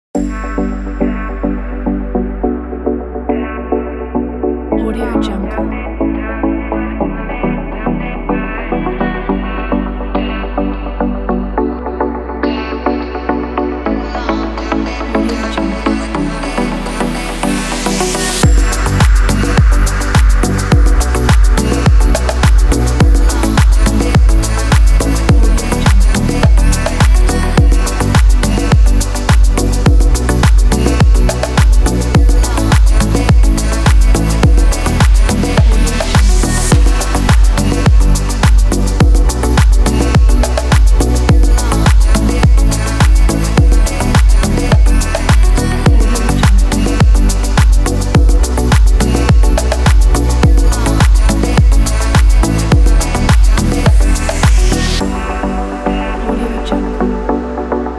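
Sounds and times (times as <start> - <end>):
summer lounge house music: 0.2 - 57.9.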